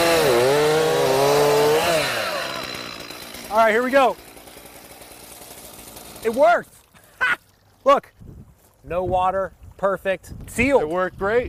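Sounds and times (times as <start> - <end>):
Stihl chainsaw engine running: 0.0 - 7.8
speech: 3.7 - 4.2, 6.2 - 6.7, 7.3 - 8.2, 8.8 - 11.4.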